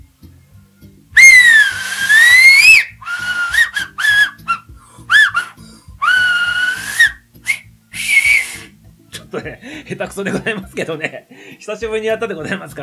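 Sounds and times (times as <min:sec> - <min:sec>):
finger whistling: 0:01.2 - 0:08.8
laughter: 0:09.2 - 0:11.2
speech: 0:09.4 - 0:12.8.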